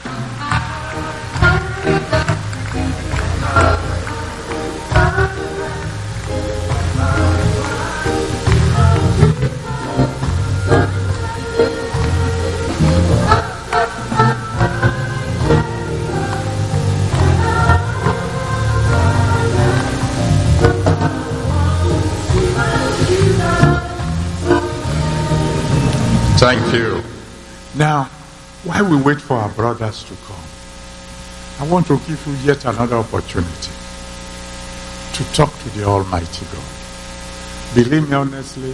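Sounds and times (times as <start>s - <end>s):
singing: 0.0s - 26.4s
music: 0.0s - 27.8s
audience clapping hands: 0.4s - 10.4s, 12.0s - 14.4s
speech: 29.0s - 30.6s, 31.6s - 33.8s, 35.2s - 36.8s, 37.8s - 38.7s.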